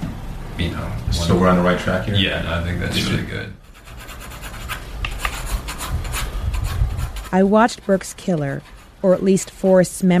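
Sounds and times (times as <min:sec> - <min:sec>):
speech: 0:00.6 - 0:03.6, 0:07.3 - 0:10.1
pencil sketching on paper: 0:03.6 - 0:09.9.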